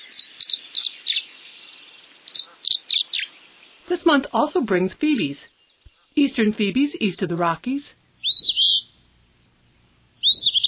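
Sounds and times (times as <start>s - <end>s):
tree swallow whistled song: 0.0s - 1.7s, 2.3s - 3.3s, 8.2s - 9.0s, 10.2s - 10.6s
faint hiss: 0.0s - 10.6s
speech: 0.3s - 1.6s, 3.9s - 5.6s, 6.2s - 8.0s.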